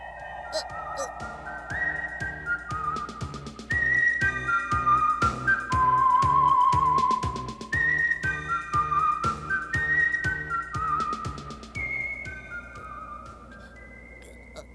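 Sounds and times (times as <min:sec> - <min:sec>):
rhythmic percussive backing: 0:00.0 - 0:13.5
person whistling a tune: 0:00.0 - 0:14.7.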